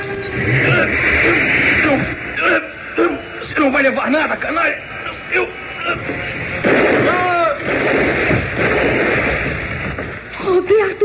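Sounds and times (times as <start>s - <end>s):
heavy noisy bursts: 0.0s - 11.0s
speech: 3.8s - 6.1s
gunshot: 6.6s - 10.2s.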